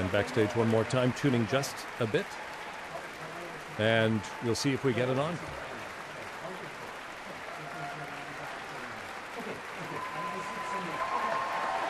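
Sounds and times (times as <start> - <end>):
concert audience applause for a youth orchestra: 0.0 - 11.8
speech: 0.1 - 2.5, 3.8 - 5.6.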